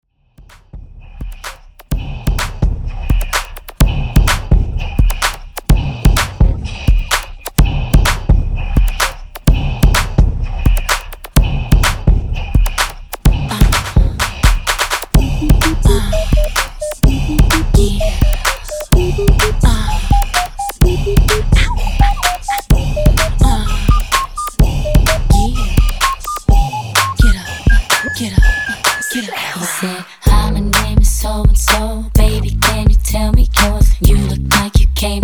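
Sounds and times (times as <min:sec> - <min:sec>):
drum loop at 127 bpm: 0:00.4 - 0:29.2, 0:30.3 - 0:35.2.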